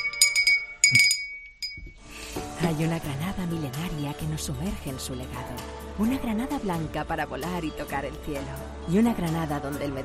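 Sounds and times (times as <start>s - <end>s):
small handbell being rung: 0.0s - 2.0s
speech: 0.9s - 1.1s, 2.6s - 10.0s.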